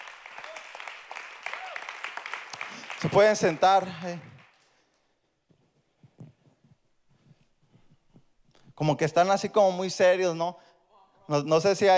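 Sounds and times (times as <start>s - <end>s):
church congregation applauding: 0.0s - 4.8s
speech: 2.7s - 4.3s, 8.8s - 10.7s, 11.3s - 11.9s.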